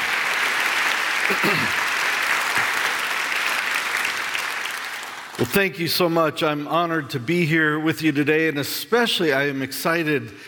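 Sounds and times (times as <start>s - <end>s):
audience applause at a church gathering: 0.0s - 5.5s
speech: 1.3s - 1.9s, 5.4s - 10.4s.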